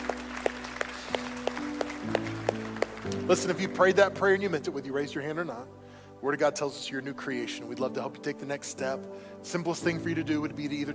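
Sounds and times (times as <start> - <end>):
audience clapping: 0.0 - 3.7
speech: 3.3 - 10.9.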